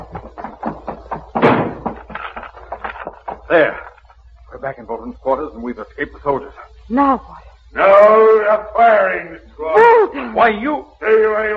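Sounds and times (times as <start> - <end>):
heavy door slamming shut: 1.4 - 2.1
speech: 3.5 - 3.8, 4.6 - 11.5.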